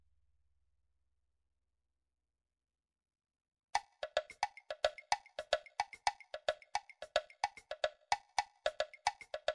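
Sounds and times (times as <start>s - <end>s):
midi drums: 3.8s - 9.5s.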